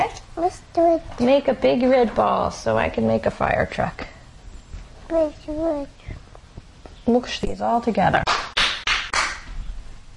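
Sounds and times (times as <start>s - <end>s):
speech: 0.4s - 4.1s, 5.1s - 6.0s, 7.1s - 8.4s
hand clapping: 8.2s - 9.6s.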